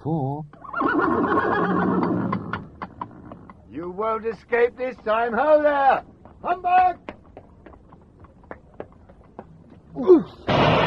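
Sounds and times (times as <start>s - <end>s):
speech: 0.0s - 2.1s, 3.8s - 7.0s, 10.0s - 10.8s
horse neighing: 0.6s - 3.6s.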